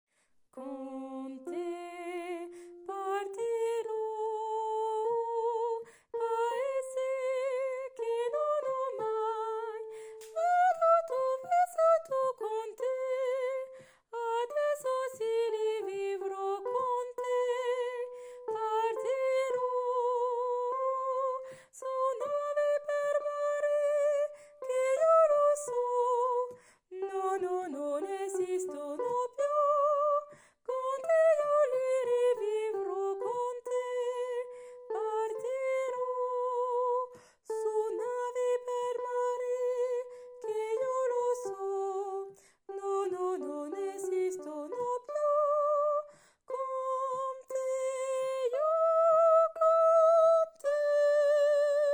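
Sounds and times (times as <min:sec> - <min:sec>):
tenor voice singing refrain: 0:00.6 - 0:51.9.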